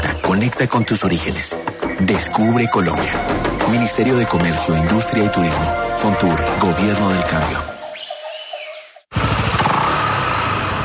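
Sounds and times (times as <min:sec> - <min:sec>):
bird chirps: 0:00.0 - 0:09.1
speech: 0:00.4 - 0:07.8
motor scooter engine running: 0:09.1 - 0:10.8.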